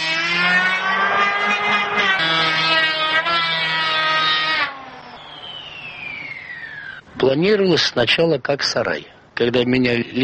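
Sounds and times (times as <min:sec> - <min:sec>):
electric hand planer whining: 0:00.0 - 0:07.0
speech: 0:07.3 - 0:10.2.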